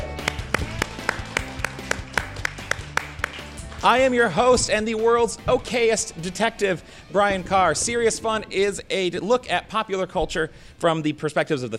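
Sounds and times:
audience clapping in unison: 0.0 - 4.4
speech: 3.8 - 11.7.

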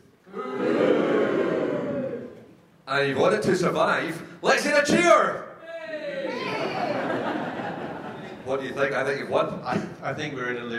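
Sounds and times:
crowd booing: 0.3 - 2.5, 5.7 - 8.4
speech: 3.0 - 5.5, 8.5 - 10.7
laughter: 6.2 - 9.9.

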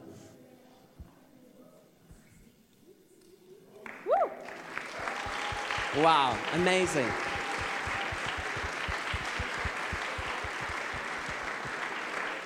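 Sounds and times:
audience applause: 4.4 - 12.4
speech: 6.0 - 7.3.

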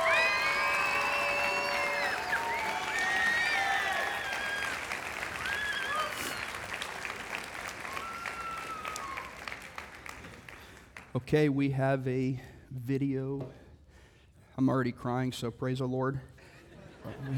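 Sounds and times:
audience round of applause: 0.0 - 11.1
speech: 11.2 - 13.6, 14.6 - 16.3, 17.0 - 17.3
laughter: 16.5 - 17.3.

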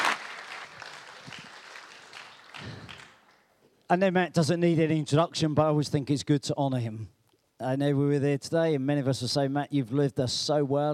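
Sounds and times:
audience applause: 0.0 - 3.3
speech: 3.9 - 10.9.

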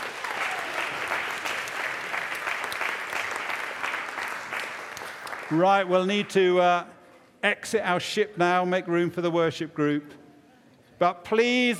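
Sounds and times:
audience applause: 0.0 - 5.9
speech: 5.5 - 10.2, 11.0 - 11.7.

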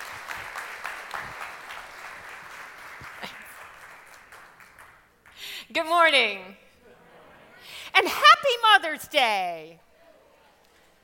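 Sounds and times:
crowd applauding: 0.0 - 5.4
speech: 5.8 - 6.6, 8.0 - 9.9.

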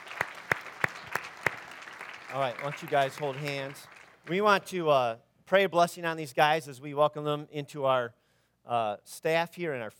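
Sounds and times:
audience applause: 0.0 - 4.4
speech: 2.3 - 9.9.

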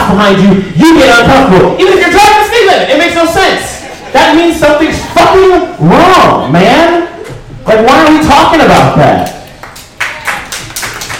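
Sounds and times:
speech: 0.1 - 2.2, 3.2 - 7.0, 7.7 - 9.3
laughter: 3.1 - 5.6
audience applause: 9.4 - 11.1.

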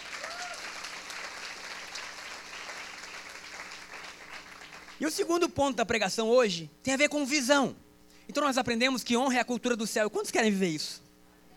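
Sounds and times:
audience applause: 0.0 - 5.0
speech: 5.0 - 11.0.

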